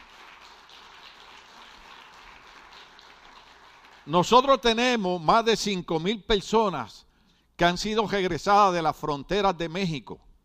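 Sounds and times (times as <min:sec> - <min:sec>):
audience applause: 0:00.0 - 0:04.2
speech: 0:04.1 - 0:10.3.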